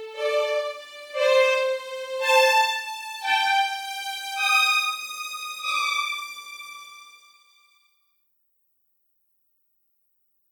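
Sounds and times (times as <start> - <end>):
first violins playing legato close: 0.0 - 7.1.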